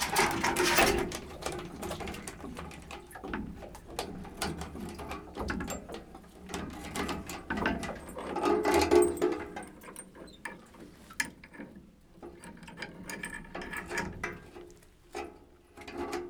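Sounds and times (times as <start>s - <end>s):
drawing water from a wheel well: 0.0s - 9.6s.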